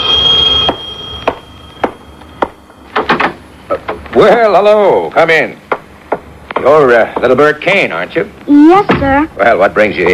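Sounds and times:
doorbell ringing: 0:00.0 - 0:03.0
speech: 0:04.2 - 0:05.6, 0:06.6 - 0:10.1.

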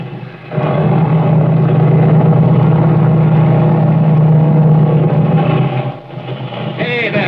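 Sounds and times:
airplane engine revving up: 0:00.0 - 0:07.2.

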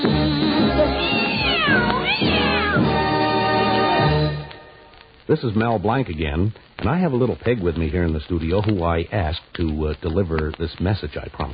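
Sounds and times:
cats meowing: 0:00.0 - 0:04.1
steady musical backing: 0:00.0 - 0:05.5
speech: 0:05.3 - 0:11.5.

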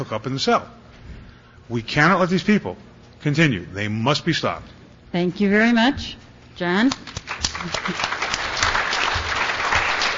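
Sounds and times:
speech: 0:00.0 - 0:00.8, 0:01.7 - 0:08.2
audience clapping: 0:06.9 - 0:10.1.

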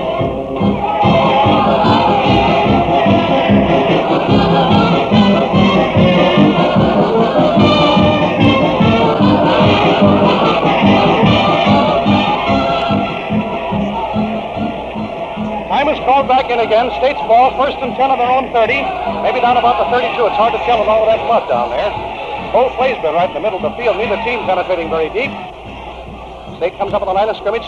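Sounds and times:
stadium music during football timeout: 0:00.0 - 0:27.6
speech: 0:16.8 - 0:25.6, 0:26.6 - 0:27.6.

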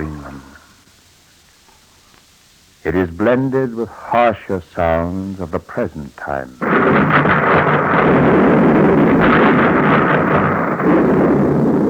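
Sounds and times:
speech: 0:02.8 - 0:08.4
depth charges dropped by destroyers exploding: 0:06.6 - 0:11.8
gunfire: 0:06.6 - 0:11.8.

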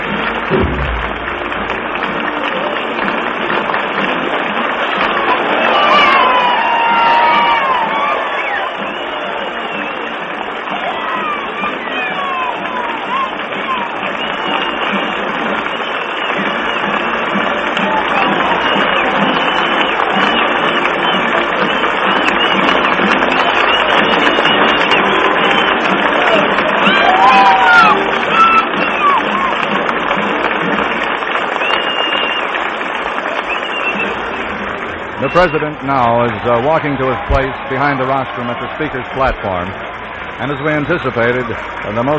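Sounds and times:
large crowd applauding and cheering: 0:00.0 - 0:42.1
whistles and whoops: 0:05.6 - 0:29.7, 0:31.5 - 0:35.7
speech: 0:35.4 - 0:42.1.

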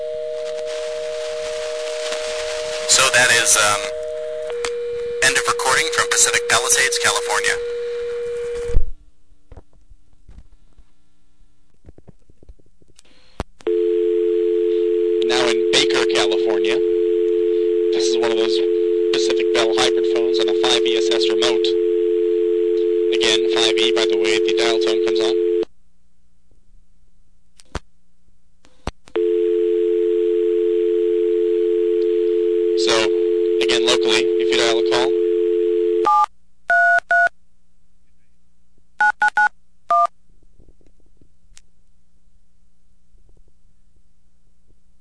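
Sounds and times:
payphone tone after taking coins in Pacific Palisades California: 0:00.0 - 0:08.8, 0:13.7 - 0:25.6, 0:29.2 - 0:37.3
speech: 0:02.9 - 0:03.9, 0:05.3 - 0:07.7
recorded voice speaking: 0:02.9 - 0:04.0, 0:05.2 - 0:07.7, 0:15.2 - 0:16.9, 0:17.6 - 0:21.8, 0:23.1 - 0:25.6, 0:32.8 - 0:35.2.

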